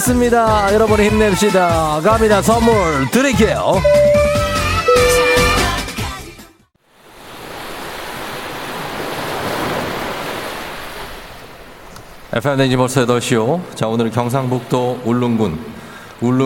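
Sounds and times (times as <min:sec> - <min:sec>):
speech: 0:00.0 - 0:04.2, 0:12.4 - 0:16.4
music burst: 0:03.6 - 0:06.0
ocean waves at a volcanic island: 0:06.8 - 0:16.4.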